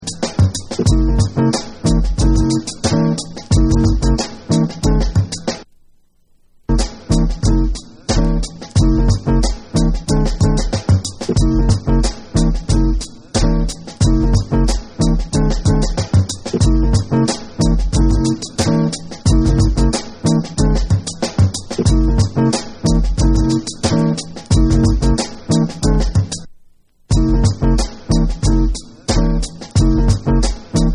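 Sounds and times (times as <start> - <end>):
instrumental music: 0.0 - 30.9.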